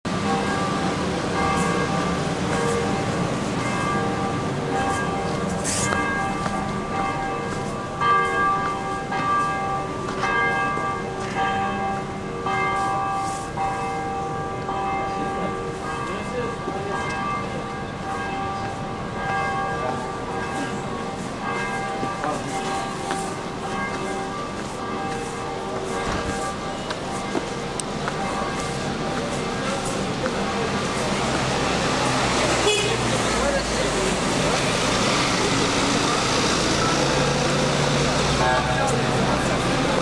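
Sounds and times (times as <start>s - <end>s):
Galatasaray church bells: 0.1s - 40.0s.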